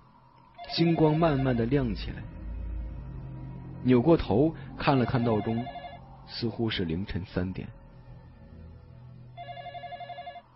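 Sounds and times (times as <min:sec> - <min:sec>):
low steady hum: 0:00.0 - 0:10.5
speech: 0:00.7 - 0:02.4, 0:03.8 - 0:07.8
landline telephone bell ringing in a warbling trill: 0:05.2 - 0:06.0, 0:09.4 - 0:10.5.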